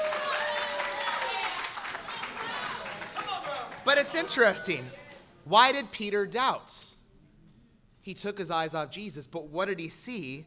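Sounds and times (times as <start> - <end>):
audience clapping: 0.0 - 4.6
speech: 3.9 - 6.9, 8.0 - 10.4.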